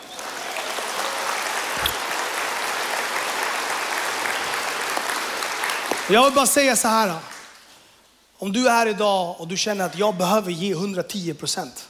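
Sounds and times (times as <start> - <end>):
audience applause: 0.0 - 6.2
speech: 6.1 - 7.3, 8.4 - 11.8.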